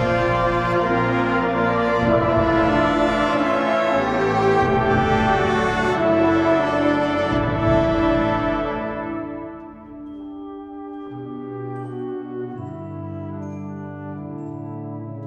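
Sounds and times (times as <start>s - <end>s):
fanfare: 0.0s - 10.2s.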